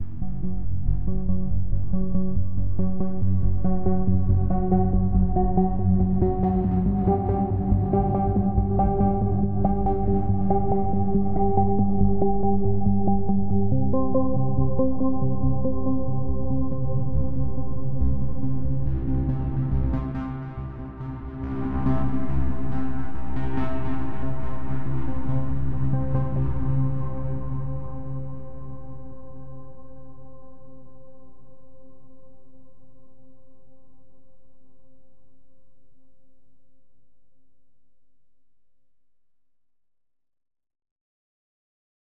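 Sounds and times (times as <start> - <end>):
ambient space music interlude: 0.0 - 29.8.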